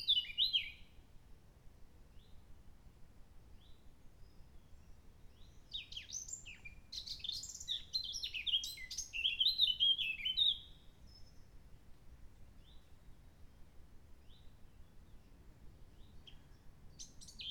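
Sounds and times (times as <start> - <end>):
blackcap singing: 0.0 - 0.8, 5.4 - 11.3, 16.0 - 17.4.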